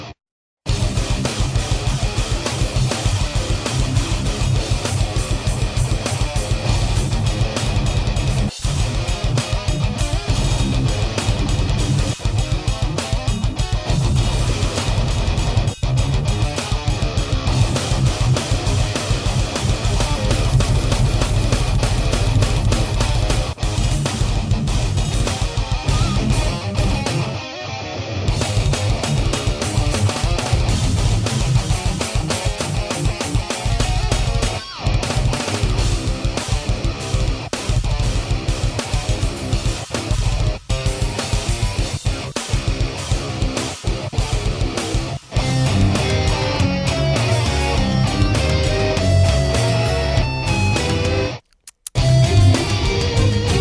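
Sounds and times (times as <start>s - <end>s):
instrumental demo: 0.7s - 53.5s.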